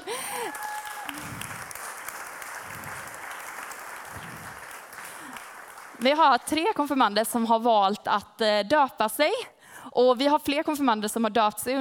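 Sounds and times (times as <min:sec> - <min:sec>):
audience applause: 0:00.0 - 0:06.1
speech: 0:06.0 - 0:11.7.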